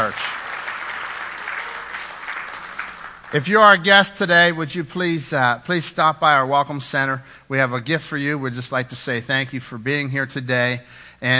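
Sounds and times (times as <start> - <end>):
congregation applauding in church during an Easter Sunday service: 0.0 - 4.0
speech: 3.3 - 11.3.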